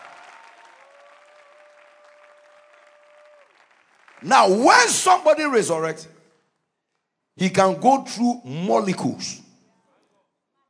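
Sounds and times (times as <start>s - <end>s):
audience clapping hands: 0.0s - 5.6s
speech: 4.2s - 6.2s, 7.4s - 9.4s.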